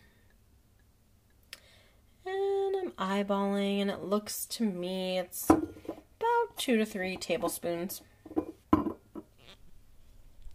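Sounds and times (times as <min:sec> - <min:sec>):
speech: 0:03.0 - 0:05.7, 0:06.6 - 0:08.1
bottle of olive oil being opened in a kitchen: 0:08.3 - 0:09.3.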